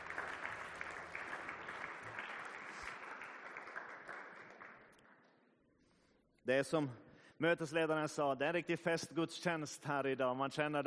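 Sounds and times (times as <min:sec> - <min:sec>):
applause for the worship singers: 0:00.0 - 0:05.4
speech: 0:06.4 - 0:10.8.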